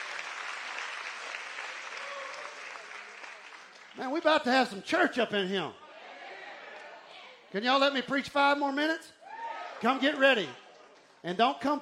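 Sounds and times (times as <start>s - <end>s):
audience clapping hands in praise: 0.0s - 4.8s
speech: 4.0s - 5.8s, 7.5s - 9.2s, 9.8s - 10.6s, 11.2s - 11.8s.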